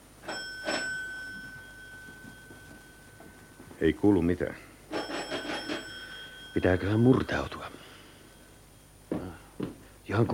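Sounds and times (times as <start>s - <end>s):
doorbell ringing: 0.2s - 4.2s, 4.9s - 9.0s
speech: 3.8s - 4.7s, 6.6s - 7.6s, 10.1s - 10.3s.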